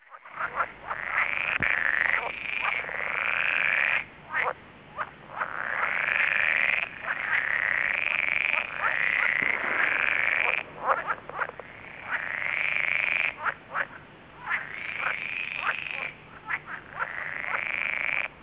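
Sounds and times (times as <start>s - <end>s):
lessonae frog croaking: 0.0s - 18.4s.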